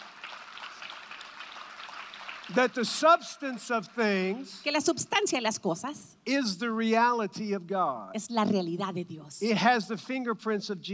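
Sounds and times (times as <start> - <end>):
audience applause: 0.0 - 4.4
speech: 2.5 - 10.9.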